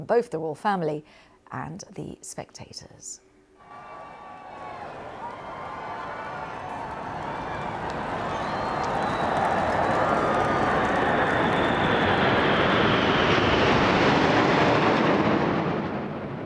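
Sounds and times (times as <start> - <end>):
speech: 0.0 - 3.3
RAF military aircraft flypast over Buckingham Palace: 4.9 - 16.4.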